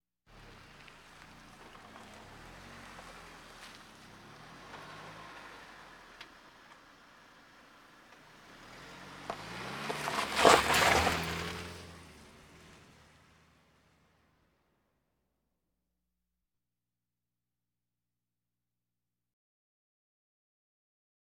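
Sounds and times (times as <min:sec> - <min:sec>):
various automobiles: 0:00.3 - 0:14.8.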